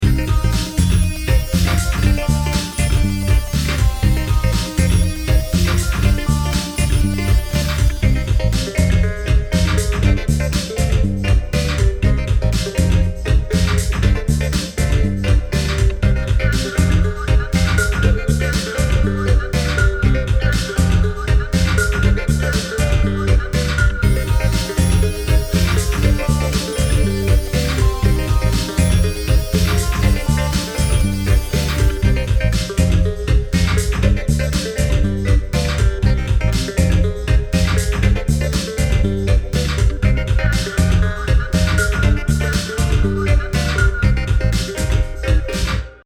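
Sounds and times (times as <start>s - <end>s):
music: 0.0s - 46.0s.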